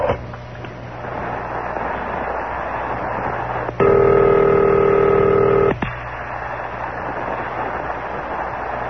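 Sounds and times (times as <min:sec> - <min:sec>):
constant hiss: 0:00.0 - 0:08.8
telephone line ringing tone: 0:03.8 - 0:05.7.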